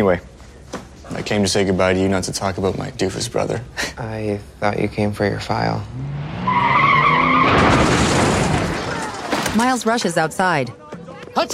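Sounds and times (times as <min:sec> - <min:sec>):
speech: 0:00.0 - 0:00.3, 0:01.1 - 0:06.3, 0:09.6 - 0:10.8, 0:11.4 - 0:11.5
car skidding: 0:05.9 - 0:09.3
car crashing into a bus stop: 0:06.0 - 0:10.0.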